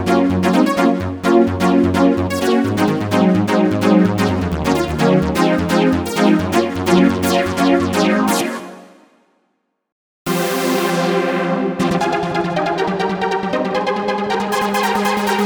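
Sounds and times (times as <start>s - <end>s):
techno trance electro music: 0.0s - 9.0s, 10.3s - 15.4s.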